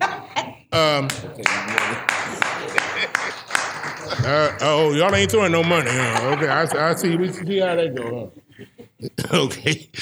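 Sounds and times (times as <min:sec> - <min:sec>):
laughter: 0:00.0 - 0:09.9
speech: 0:00.8 - 0:08.4, 0:09.0 - 0:09.9
audience clapping: 0:01.0 - 0:07.6.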